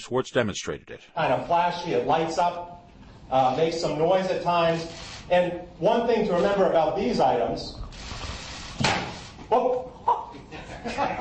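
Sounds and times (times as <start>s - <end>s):
speech: 0.0s - 7.8s, 8.8s - 9.9s
toy bow arrow hitting a wall: 8.8s - 9.3s
laughter: 9.5s - 11.1s.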